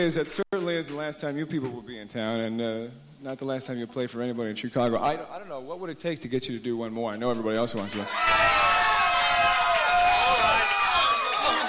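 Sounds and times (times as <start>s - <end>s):
speech: 0.0s - 8.6s
concert audience screaming and hollering: 8.1s - 11.6s.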